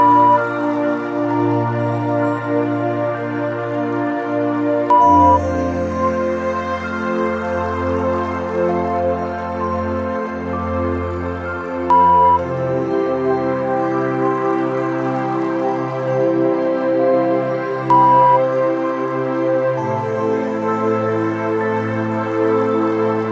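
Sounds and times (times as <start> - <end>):
relaxing meditation background music with rain at 70 bpm: 0.0 - 23.3.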